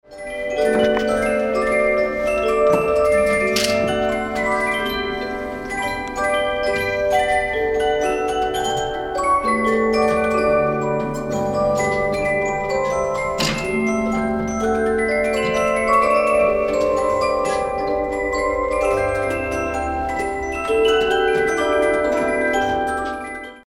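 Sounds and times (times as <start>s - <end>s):
music box: 0.0s - 23.6s.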